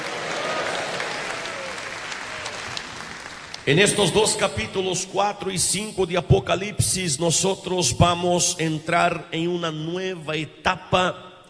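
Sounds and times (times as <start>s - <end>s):
audience applauding loudly: 0.0s - 4.4s
speech: 3.7s - 11.3s.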